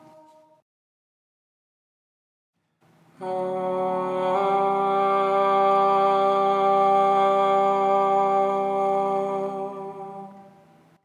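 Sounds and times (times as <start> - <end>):
soprano singing a soprano part: 0.0 - 0.6, 3.2 - 10.7.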